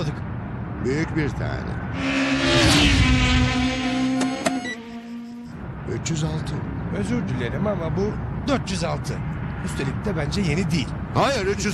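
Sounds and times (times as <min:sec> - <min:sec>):
speech: 0:00.8 - 0:03.6, 0:05.9 - 0:11.7
white taxi engine high-revving at about 306 km/h: 0:01.9 - 0:05.8.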